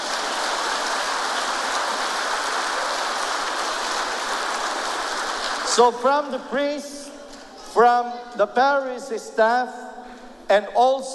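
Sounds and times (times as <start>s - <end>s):
audience applause: 0.0s - 5.9s
speech: 5.8s - 9.9s, 10.5s - 11.1s.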